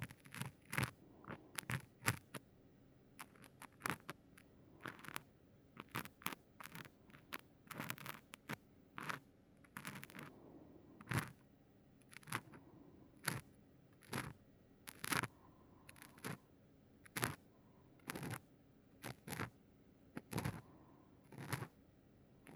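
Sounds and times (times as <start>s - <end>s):
careful ear cleaning of the right ear with both ends of a cotton swab: 0.0s - 2.4s, 4.8s - 10.3s, 11.0s - 11.4s, 12.1s - 12.6s, 13.2s - 16.4s, 17.1s - 17.4s, 18.0s - 18.4s, 19.0s - 19.5s, 20.2s - 21.8s.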